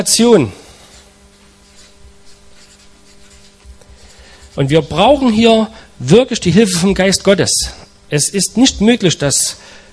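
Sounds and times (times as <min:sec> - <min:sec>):
speech: 0:00.0 - 0:00.6, 0:04.6 - 0:09.8
low constant hum: 0:00.0 - 0:09.9
notes being written during a German-language religious teaching session: 0:00.9 - 0:04.7.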